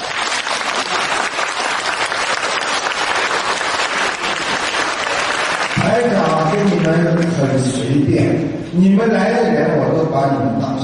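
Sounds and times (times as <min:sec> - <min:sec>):
audience applause: 0:00.0 - 0:07.5
speech: 0:06.9 - 0:10.8.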